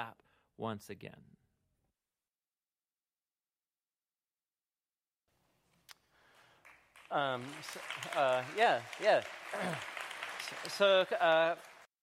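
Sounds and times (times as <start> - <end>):
speech: 0.0 - 1.4, 7.1 - 11.7
audience applause: 6.4 - 11.9.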